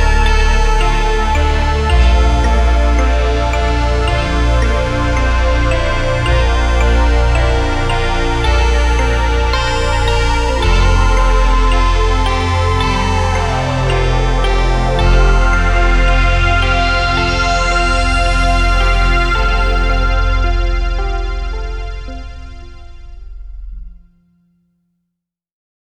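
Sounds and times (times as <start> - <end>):
spectrum augmented ambience: 0.0 - 24.2.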